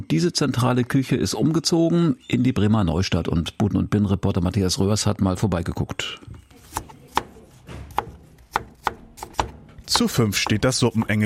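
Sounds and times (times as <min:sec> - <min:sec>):
speech: 0:00.0 - 0:06.3, 0:10.0 - 0:11.2
knife chopping vegetables on a cutting board: 0:06.5 - 0:11.2.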